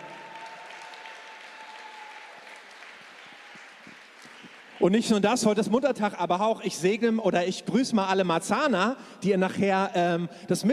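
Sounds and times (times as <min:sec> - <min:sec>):
audience applause: 0:00.0 - 0:05.0
speech: 0:04.8 - 0:10.7.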